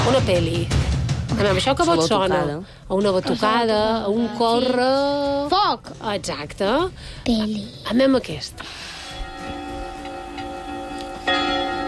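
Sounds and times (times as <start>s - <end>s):
speech: 0.1s - 8.9s
church bells ringing: 9.0s - 11.8s.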